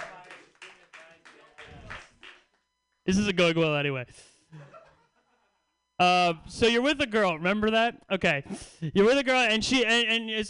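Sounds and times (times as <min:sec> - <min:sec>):
audience clapping: 0:00.0 - 0:02.7
speech: 0:03.1 - 0:04.8, 0:06.0 - 0:10.4.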